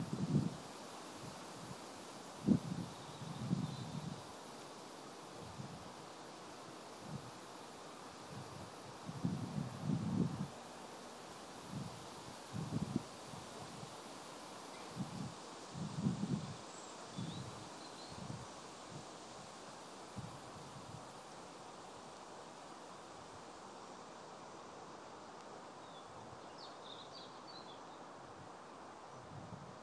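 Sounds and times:
wind on a windy day in Great Yarmouth cemetery: 0.0 - 29.8.

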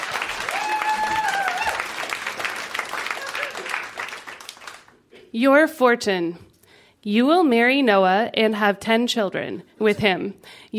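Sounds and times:
audience applause welcoming a storyteller to the stage: 0.0 - 5.1
person whooping: 0.4 - 2.0, 3.2 - 3.8
speech: 5.4 - 10.7.

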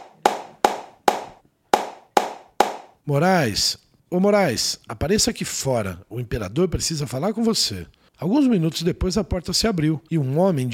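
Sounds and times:
hand clapping to call a worker: 0.0 - 2.9
speech: 3.1 - 10.7.

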